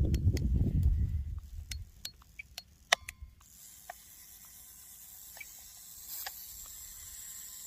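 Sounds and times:
mechanical spring unwinding in an anti-tank mine after key insertion: 0:00.0 - 0:07.6.

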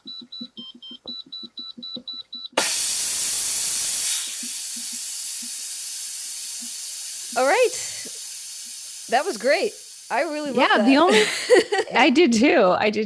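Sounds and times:
coffee pot percolating: 0:02.6 - 0:10.9
speech: 0:07.4 - 0:07.9, 0:09.1 - 0:13.0
laughter: 0:10.6 - 0:12.1.

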